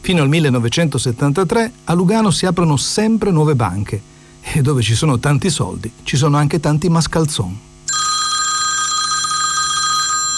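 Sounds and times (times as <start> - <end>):
speech: 0.0 - 7.7
telephone bell ringing: 7.9 - 10.3.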